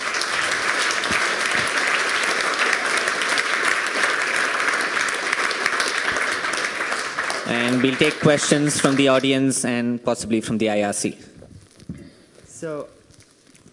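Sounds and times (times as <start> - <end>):
audience applause thanking a speaker after a talk: 0.0 - 9.5
speech: 7.5 - 11.3, 12.6 - 13.0.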